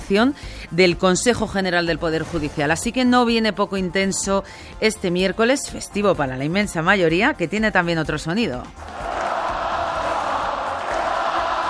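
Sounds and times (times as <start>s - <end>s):
speech: 0.1s - 9.2s
stadium crowd ovation: 8.9s - 11.6s.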